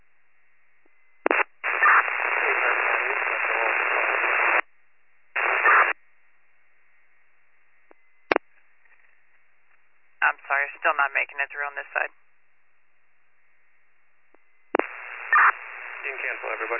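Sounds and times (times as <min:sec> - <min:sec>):
radio static: 0:01.2 - 0:04.6, 0:05.4 - 0:06.0, 0:10.2 - 0:12.2, 0:14.7 - 0:16.7.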